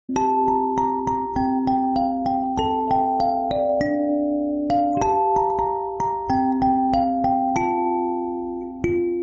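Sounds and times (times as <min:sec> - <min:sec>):
kalimba ringtone: 0:00.1 - 0:09.2.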